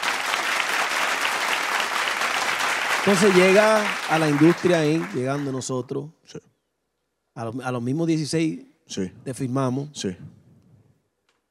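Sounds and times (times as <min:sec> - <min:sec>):
audience applause: 0:00.0 - 0:05.8
speech: 0:03.0 - 0:06.5, 0:07.4 - 0:10.4.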